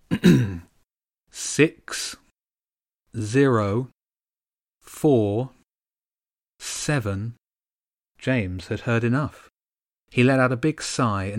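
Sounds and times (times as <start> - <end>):
man clearing throat before reading lottery numbers: 0.0 - 0.7
speech: 0.2 - 0.6, 1.3 - 2.2, 3.1 - 4.0, 4.9 - 5.6, 6.9 - 7.4, 8.2 - 9.5, 10.1 - 11.3.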